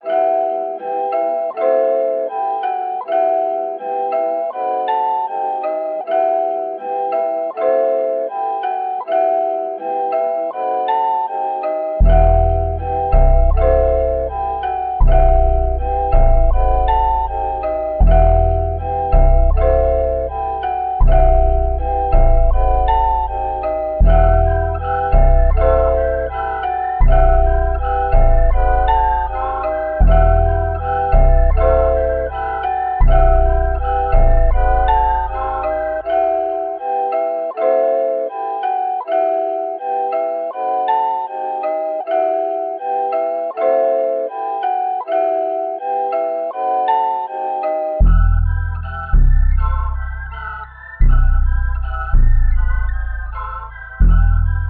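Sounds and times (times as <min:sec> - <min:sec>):
160 BPM E minor trap melody: 0:00.0 - 0:54.6.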